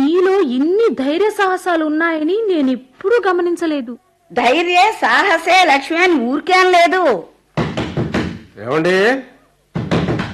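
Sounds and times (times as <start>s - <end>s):
speech: 0.6s - 7.3s, 8.6s - 9.3s
knocking on a door by a thief: 7.6s - 8.9s, 9.7s - 10.3s.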